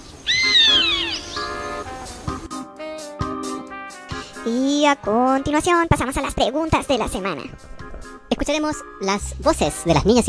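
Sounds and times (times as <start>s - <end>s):
chimango caracara screeching while hunting pigeons: 0.2s - 1.6s
speech: 4.4s - 7.8s, 8.4s - 10.2s.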